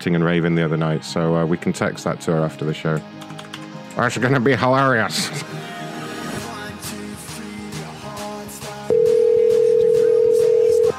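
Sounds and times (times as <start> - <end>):
speech: 0.0 - 3.4, 4.0 - 5.6
telephone ringback tone while calling a phone: 8.9 - 10.9.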